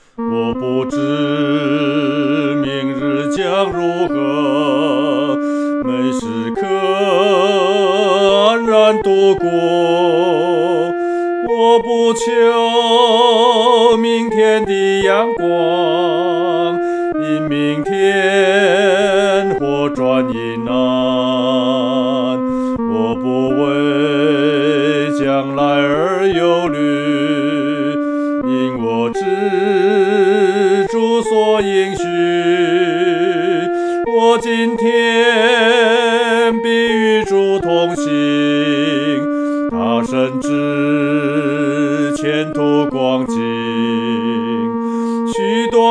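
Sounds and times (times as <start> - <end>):
solo singing: 0.2 - 45.8.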